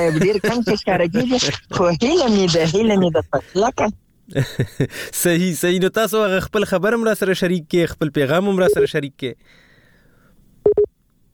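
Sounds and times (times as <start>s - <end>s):
laughter: 0.0s - 5.2s
speech: 0.0s - 9.6s
telephone busy tone as a call-in caller's line cuts off: 10.7s - 10.9s.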